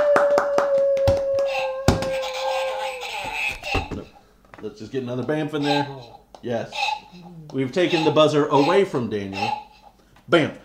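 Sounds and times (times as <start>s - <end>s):
small group applauding: 0.0s - 3.2s
speech: 4.8s - 9.6s, 10.3s - 10.6s.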